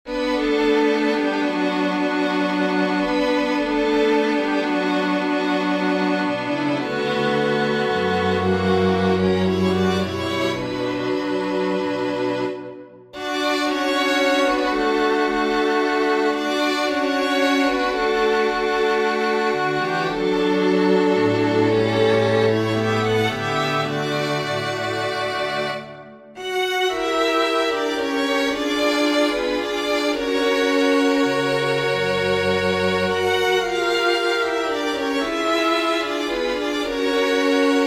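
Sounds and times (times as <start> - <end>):
string quartet: 0.0 - 37.8.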